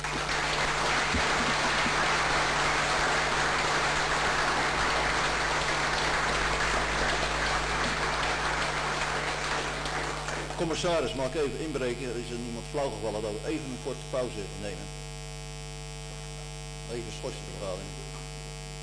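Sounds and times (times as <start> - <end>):
warm applause from meeting audience: 0.0 - 11.9
speech: 10.6 - 15.0, 16.9 - 18.2.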